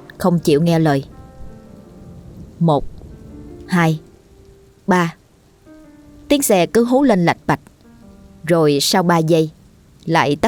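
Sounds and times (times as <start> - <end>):
heavy rain pouring down: 0.0 - 10.4
speech: 0.2 - 1.1, 2.6 - 3.0, 3.7 - 4.1, 4.9 - 5.2, 6.3 - 7.7, 8.4 - 10.4.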